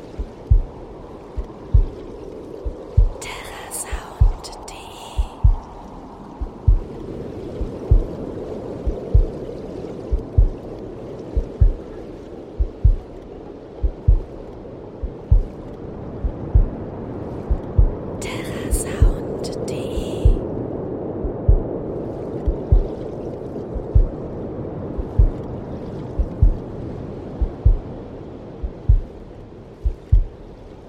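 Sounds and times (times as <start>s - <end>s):
waves: 0.0s - 30.8s
heartbeat: 0.2s - 0.8s, 1.4s - 5.8s, 6.4s - 7.0s, 7.6s - 8.2s, 8.8s - 9.4s, 10.1s - 10.6s, 11.3s - 12.0s, 12.6s - 13.2s, 13.8s - 19.4s, 20.0s - 20.5s, 21.2s - 21.7s, 22.4s - 23.0s, 23.7s - 24.3s, 24.9s - 25.5s, 26.2s - 26.6s, 27.4s - 28.0s, 28.6s - 29.2s, 29.8s - 30.4s.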